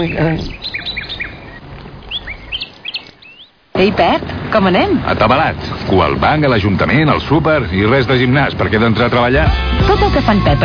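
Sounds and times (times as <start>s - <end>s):
speech: 0.0s - 0.8s, 3.8s - 10.6s
small birds chirping: 0.0s - 3.7s.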